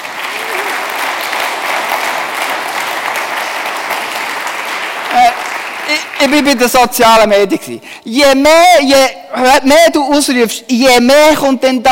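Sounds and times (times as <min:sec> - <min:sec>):
audience applause: 0:00.0 - 0:06.8
speech: 0:06.2 - 0:11.8.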